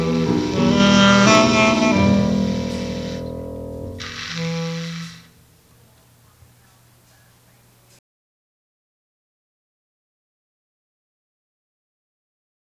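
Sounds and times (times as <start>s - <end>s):
clarinet: 0.0s - 7.4s.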